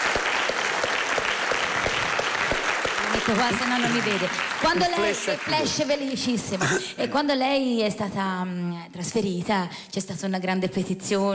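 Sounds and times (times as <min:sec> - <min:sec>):
audience applause: 0:00.0 - 0:06.5
speech: 0:03.3 - 0:11.3.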